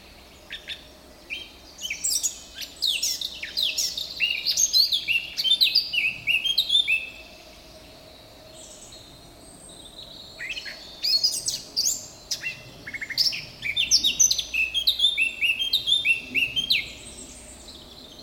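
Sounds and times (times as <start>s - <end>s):
Eurasian blackcap Sylvia atricapilla warbling song: 0.6s - 7.2s, 10.4s - 17.9s.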